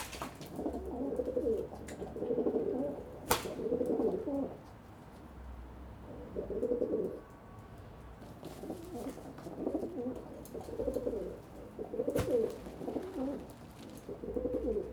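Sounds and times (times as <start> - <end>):
pigeon cooing: 0.0 - 4.6, 6.1 - 7.2, 8.6 - 14.9
sharp snap: 3.3 - 3.6.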